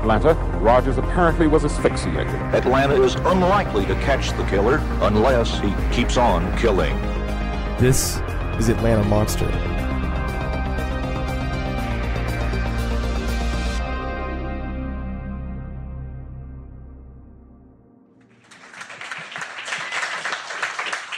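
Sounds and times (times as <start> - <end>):
speech: 0.0 - 7.2, 7.8 - 9.8
music: 0.0 - 21.1
crowd applause: 18.3 - 21.1.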